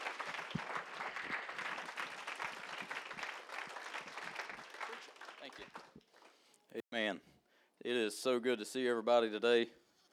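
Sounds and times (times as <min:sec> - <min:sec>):
audience applauding: 0:00.0 - 0:06.4
speech: 0:07.0 - 0:09.8.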